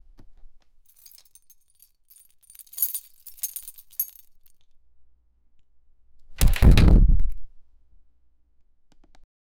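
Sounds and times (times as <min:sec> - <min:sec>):
apartment door unlocking: 0:02.2 - 0:04.2.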